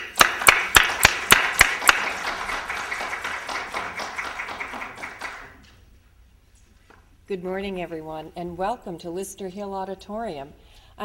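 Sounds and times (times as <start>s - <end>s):
audience applause: 0.0s - 5.6s
speech: 7.3s - 11.0s.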